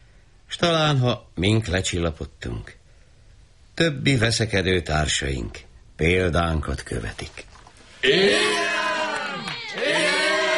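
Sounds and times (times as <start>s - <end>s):
speech: 0.6s - 2.8s, 3.8s - 8.8s
crowd shouting and cheering: 8.0s - 10.5s.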